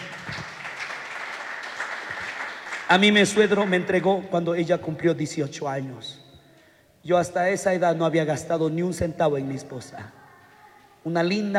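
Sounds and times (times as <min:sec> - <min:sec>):
audience applause: 0:00.0 - 0:04.1
speech: 0:02.9 - 0:06.2, 0:07.0 - 0:10.2, 0:11.0 - 0:11.5.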